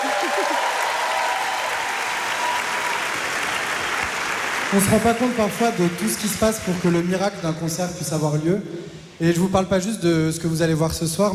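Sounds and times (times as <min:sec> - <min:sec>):
audience applauding in concert hall: 0:00.0 - 0:07.3
speech: 0:04.7 - 0:11.3.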